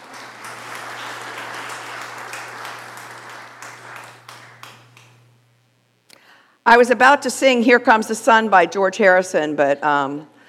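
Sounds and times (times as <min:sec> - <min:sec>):
audience applause: 0:00.0 - 0:05.3
speech: 0:06.7 - 0:10.3.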